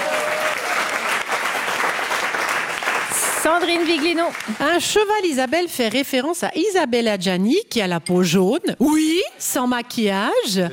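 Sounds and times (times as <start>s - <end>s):
audience applause: 0.0s - 4.8s
speech: 3.4s - 10.7s.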